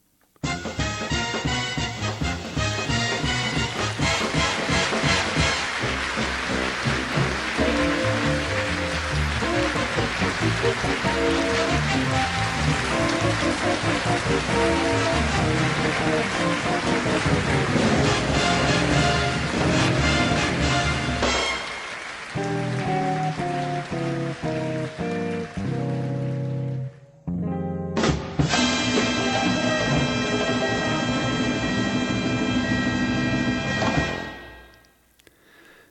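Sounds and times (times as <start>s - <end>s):
upbeat jazzy theme music with brass: 0.4s - 26.0s, 28.0s - 34.7s
dense sustained applause: 2.0s - 27.0s.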